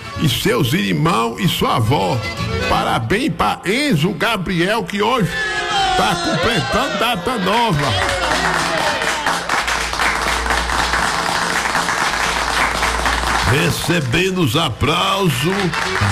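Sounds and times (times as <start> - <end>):
speech: 0.2 - 9.0, 13.5 - 16.1
laughter: 5.7 - 9.3, 15.4 - 16.1
applause: 7.6 - 16.1.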